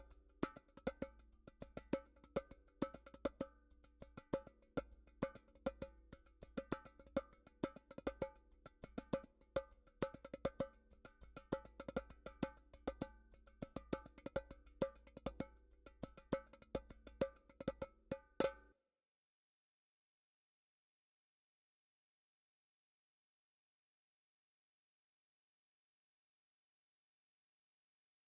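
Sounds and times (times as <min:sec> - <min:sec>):
derbuka drumming: 0:00.0 - 0:18.7.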